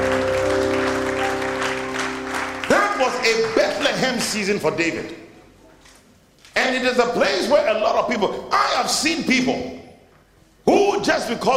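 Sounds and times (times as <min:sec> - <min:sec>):
audience clapping: 0:00.0 - 0:04.8
speech: 0:03.2 - 0:05.2, 0:06.7 - 0:09.8, 0:10.6 - 0:11.5.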